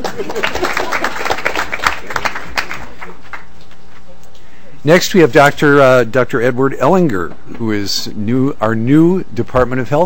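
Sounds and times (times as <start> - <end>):
audience applause: 0.0 - 3.5
speech: 0.1 - 1.4, 4.8 - 10.0.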